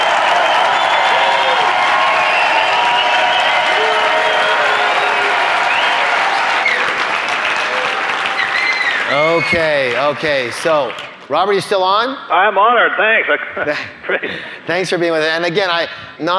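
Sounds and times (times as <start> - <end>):
applause and standing ovation: 0.0 - 11.3
speech: 9.4 - 16.3.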